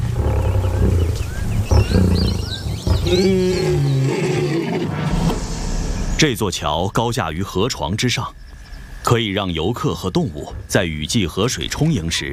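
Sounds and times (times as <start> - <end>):
lion roaring and growling: 0.0 - 5.4
faint higher chirping calls: 0.3 - 4.5
speech: 3.1 - 3.6, 6.2 - 8.4, 9.1 - 12.3.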